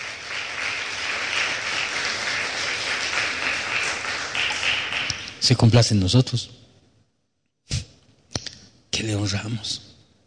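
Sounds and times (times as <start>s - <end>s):
audience applause: 0.0s - 5.3s
speech: 5.4s - 6.6s, 9.0s - 9.9s.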